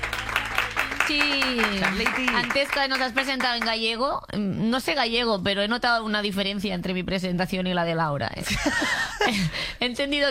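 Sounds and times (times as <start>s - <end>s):
audience applause: 0.0s - 3.7s
speech: 1.1s - 10.3s.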